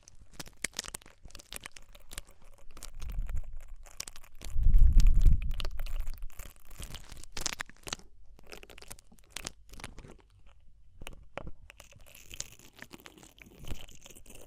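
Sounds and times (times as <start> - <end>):
ear cleaning crackle: 0.0 - 14.4.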